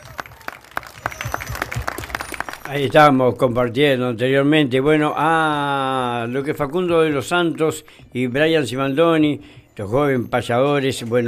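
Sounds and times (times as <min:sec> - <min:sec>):
audience applause: 0:00.0 - 0:02.9
speech: 0:02.7 - 0:11.2.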